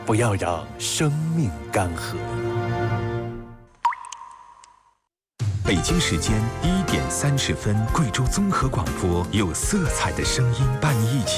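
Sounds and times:
speech: 0:00.1 - 0:02.4, 0:05.7 - 0:11.3
single water drop plopping: 0:03.8 - 0:04.8.

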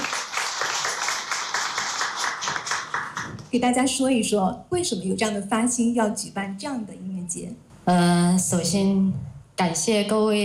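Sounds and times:
audience applause: 0:00.0 - 0:03.4
speech: 0:03.5 - 0:10.4.

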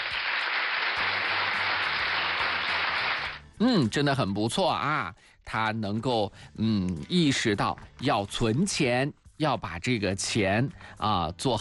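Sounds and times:
applause: 0:00.0 - 0:03.4
speech: 0:03.6 - 0:11.5.

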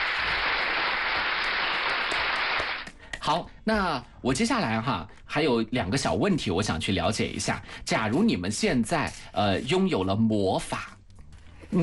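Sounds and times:
crowd clapping: 0:00.0 - 0:03.0
speech: 0:03.2 - 0:11.0.

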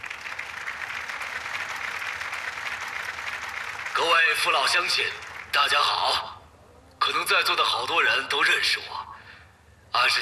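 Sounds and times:
warm applause: 0:00.0 - 0:06.2
speech: 0:04.3 - 0:06.3, 0:07.1 - 0:09.1, 0:10.0 - 0:10.2.

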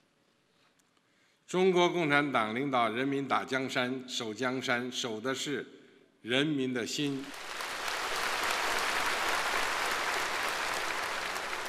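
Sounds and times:
speech: 0:01.5 - 0:07.4
thunderous applause from audience: 0:07.3 - 0:11.6.

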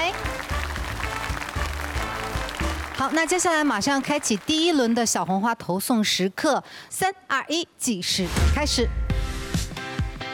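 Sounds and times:
audience applause at a singing show: 0:00.0 - 0:05.0
speech: 0:03.0 - 0:09.0.

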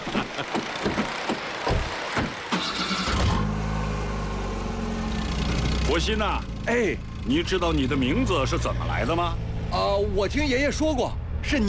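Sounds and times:
car engine starting and idling: 0:00.0 - 0:11.3
car door shutting: 0:00.5 - 0:03.2
speech: 0:06.0 - 0:11.6.

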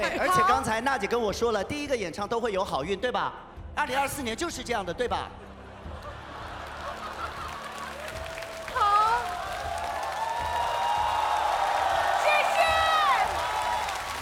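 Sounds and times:
laughter: 0:00.0 - 0:00.6, 0:05.6 - 0:09.2
speech: 0:00.0 - 0:05.5
studio audience at a televised singing competition cheering and clapping: 0:05.9 - 0:14.1
shouting voices and whoops: 0:07.8 - 0:14.1.

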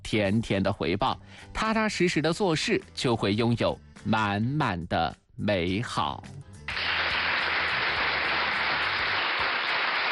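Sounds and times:
speech: 0:00.1 - 0:06.5
audience applause: 0:06.7 - 0:10.1.

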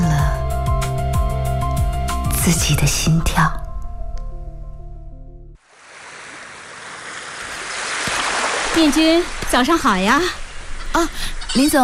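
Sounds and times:
brief musical passage: 0:00.0 - 0:05.6
speech: 0:02.4 - 0:03.6, 0:08.8 - 0:11.8
running water: 0:05.6 - 0:11.8.

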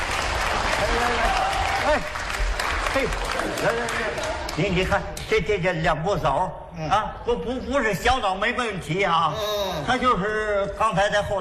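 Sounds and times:
audience applause: 0:00.0 - 0:04.8
speech: 0:01.9 - 0:02.2, 0:02.9 - 0:11.4.

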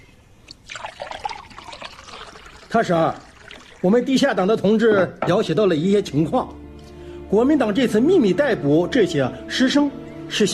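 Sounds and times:
water being poured: 0:00.5 - 0:04.5
speech: 0:02.7 - 0:06.6, 0:07.3 - 0:10.5.

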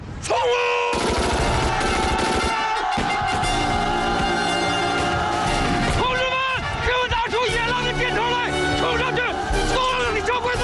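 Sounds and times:
battle noise: 0:00.8 - 0:10.6
heavy machine gun firing: 0:00.9 - 0:03.5.

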